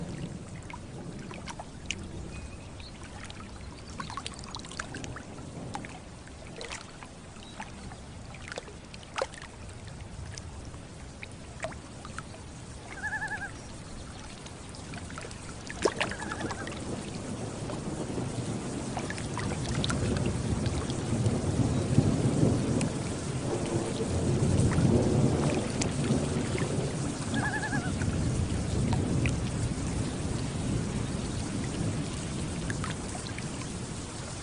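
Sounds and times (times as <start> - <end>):
thunder rumbling over a lake: 0.0 - 6.4, 14.9 - 34.4
drips: 0.0 - 10.6, 11.2 - 18.0, 19.0 - 33.7
gentle water lapping: 0.0 - 34.4
rain on a lake: 0.0 - 34.4
loon calls: 12.9 - 13.6, 16.1 - 16.7, 27.3 - 28.0.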